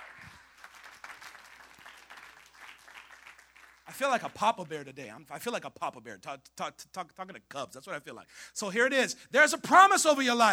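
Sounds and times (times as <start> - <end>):
audience clapping: 0.0 - 4.9
speech: 3.9 - 10.5.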